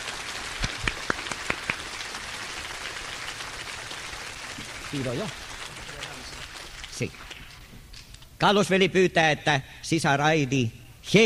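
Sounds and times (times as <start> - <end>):
applause during a church service: 0.0 - 7.7
speech: 4.9 - 5.4, 7.0 - 7.2, 8.4 - 11.2.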